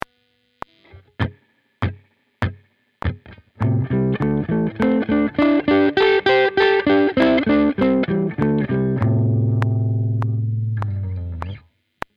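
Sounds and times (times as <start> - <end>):
blues guitar: 0.8 - 11.6.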